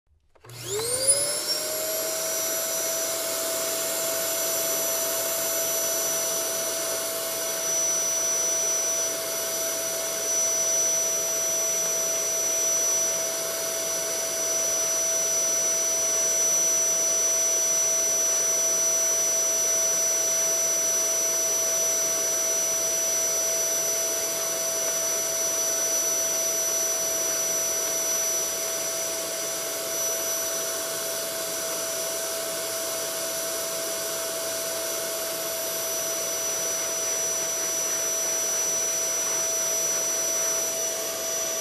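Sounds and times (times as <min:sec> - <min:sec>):
vacuum cleaner: 0:00.1 - 0:41.6.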